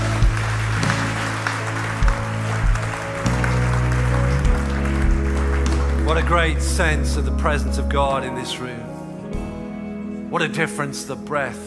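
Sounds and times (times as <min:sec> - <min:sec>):
audience applause: 0:00.0 - 0:07.3
speech: 0:06.2 - 0:09.4, 0:10.3 - 0:11.6.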